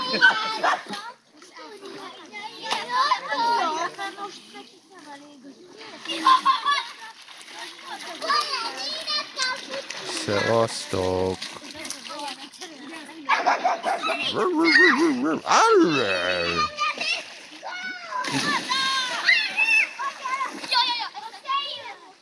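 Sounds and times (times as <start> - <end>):
water splashing and churning: 0.0 - 22.2
speech: 0.1 - 0.6, 10.3 - 11.6, 14.3 - 16.8
laughter: 6.1 - 6.9, 13.8 - 16.7
dog barking and yelping excitedly: 13.3 - 15.9.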